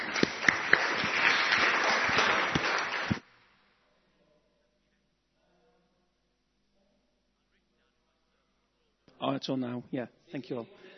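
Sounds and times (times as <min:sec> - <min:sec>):
audience applause: 0:00.0 - 0:03.2
speech: 0:09.4 - 0:10.9.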